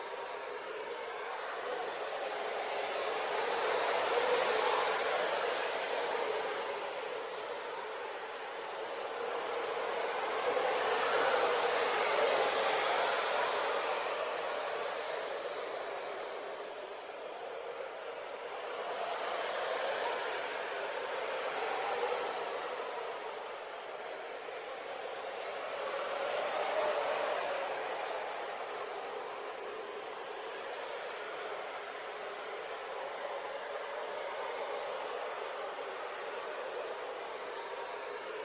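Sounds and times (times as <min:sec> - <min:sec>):
gentle breeze: 0:00.0 - 0:38.4.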